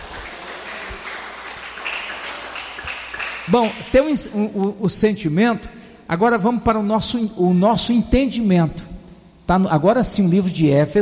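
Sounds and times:
audience applauding: 0.0s - 4.8s
speech: 3.5s - 8.9s, 9.5s - 11.0s.

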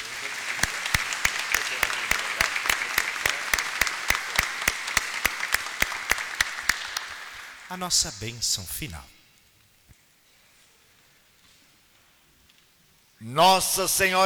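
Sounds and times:
applause in church: 0.0s - 8.3s
speech: 7.7s - 9.2s, 13.2s - 14.2s.

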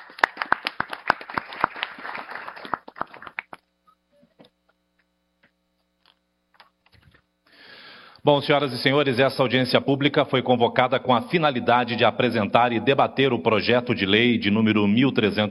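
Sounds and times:
audience applause: 0.0s - 3.6s
speech: 8.2s - 15.4s.

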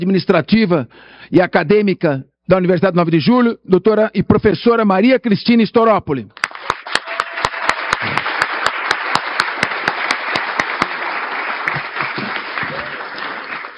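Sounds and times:
speech: 0.0s - 6.7s
crowd applauding: 6.4s - 13.7s
sharp evenly spaced clap: 6.4s - 13.7s.

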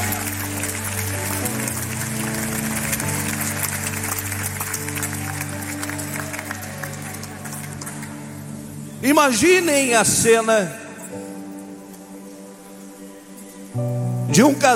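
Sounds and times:
audience applauding: 0.0s - 8.8s
speech: 9.0s - 10.8s, 14.4s - 14.7s.

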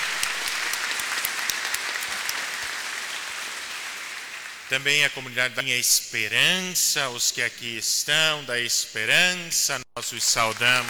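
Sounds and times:
audience applauding: 0.0s - 5.2s, 10.2s - 10.8s
speech: 4.7s - 10.8s.

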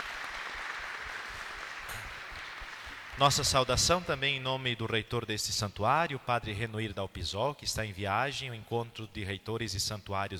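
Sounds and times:
crowd applauding: 0.0s - 4.2s
speech: 3.2s - 10.3s.

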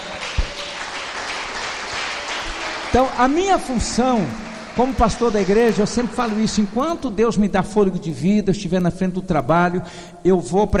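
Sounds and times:
church congregation applause during a sermon on prayer: 0.0s - 7.1s
speech: 2.9s - 10.7s.

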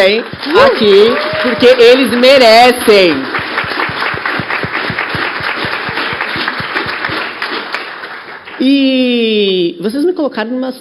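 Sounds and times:
speech: 0.0s - 3.4s, 8.6s - 10.8s
audience applause: 0.0s - 8.8s.

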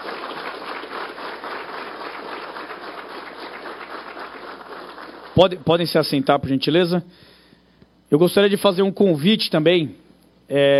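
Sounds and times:
audience applause: 0.0s - 5.9s
speech: 5.4s - 7.3s, 8.1s - 10.7s.

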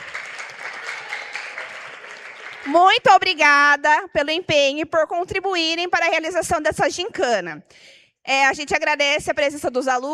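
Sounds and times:
audience applause for a teacher at a school gincana contest: 0.0s - 2.8s
speech: 2.6s - 10.1s.

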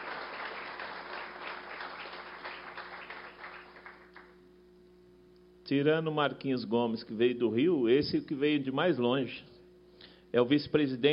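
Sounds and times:
audience applause: 0.0s - 4.3s
faint low hum: 0.0s - 11.1s
speech: 5.7s - 9.6s, 10.3s - 11.1s.

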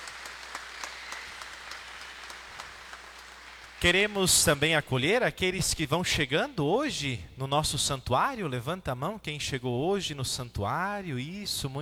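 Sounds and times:
audience applause for the sisters: 0.0s - 4.8s
speech: 3.8s - 11.7s.

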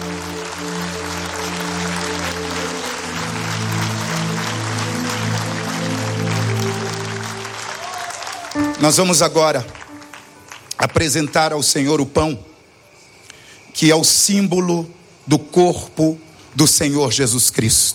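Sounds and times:
sustained organ or keyboard chords: 0.0s - 11.1s
audience applauding: 0.0s - 11.6s
speech: 8.8s - 9.8s, 10.8s - 12.5s, 13.8s - 17.9s.

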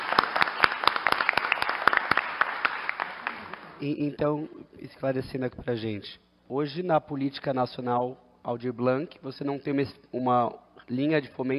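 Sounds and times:
audience applause: 0.0s - 3.8s
speech: 3.8s - 11.5s.

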